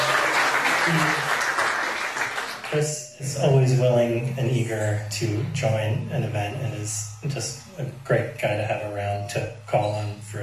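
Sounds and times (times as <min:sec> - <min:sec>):
audience applause for a guest performer at an event: 0:00.0 - 0:03.0
speech: 0:00.9 - 0:01.3, 0:02.7 - 0:10.4.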